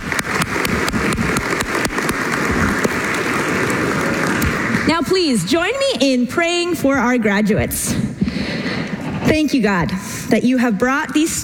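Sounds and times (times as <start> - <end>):
audience applause: 0.0 - 5.1
speech: 4.9 - 8.2, 9.3 - 11.4.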